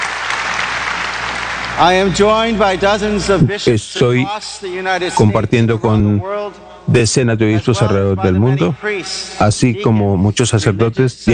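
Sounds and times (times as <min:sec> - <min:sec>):
applause: 0:00.0 - 0:02.8
speech: 0:01.8 - 0:11.3.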